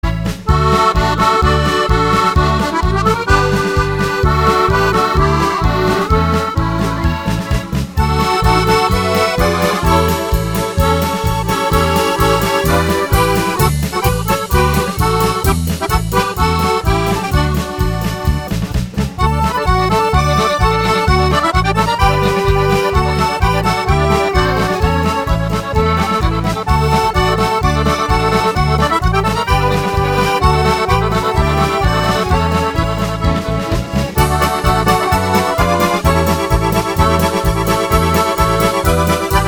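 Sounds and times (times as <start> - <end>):
polka music: 0.0 - 39.4.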